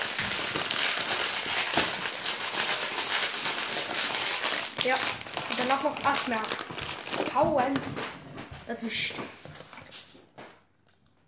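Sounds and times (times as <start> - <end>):
packaging being opened: 0.0 - 8.6
speech: 4.8 - 9.4.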